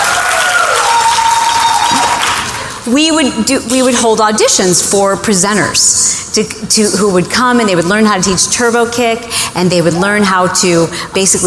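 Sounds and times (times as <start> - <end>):
audience cheering: 0.0 - 2.7
speech: 2.9 - 11.4.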